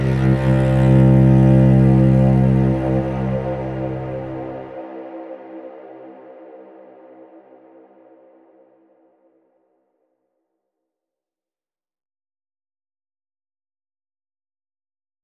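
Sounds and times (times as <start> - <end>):
cello: 0.0 - 6.6.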